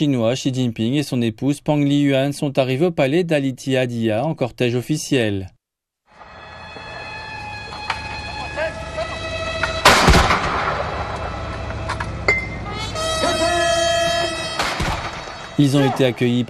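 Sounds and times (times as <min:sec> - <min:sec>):
speech: 0:00.0 - 0:05.6, 0:15.6 - 0:16.4
sustained horn-like tones: 0:06.2 - 0:16.4
cannon salute blasts: 0:09.7 - 0:11.7, 0:14.4 - 0:16.1.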